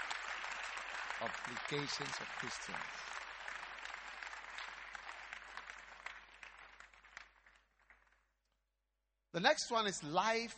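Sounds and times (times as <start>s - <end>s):
audience clapping: 0.0s - 8.4s
speech: 1.2s - 3.2s, 9.4s - 10.5s.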